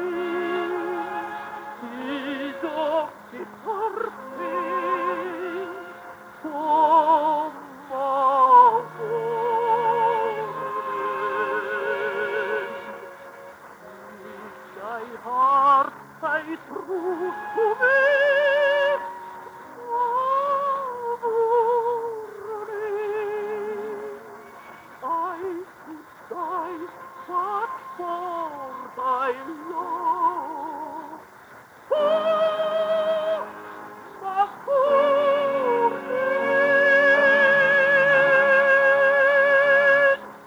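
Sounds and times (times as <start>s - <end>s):
Irish love song from a 1934 broadcast: 0.0s - 40.4s.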